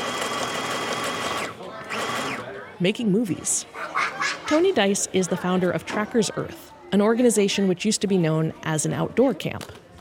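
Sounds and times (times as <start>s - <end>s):
sewing machine running: 0.0s - 2.4s
speech: 2.8s - 9.8s.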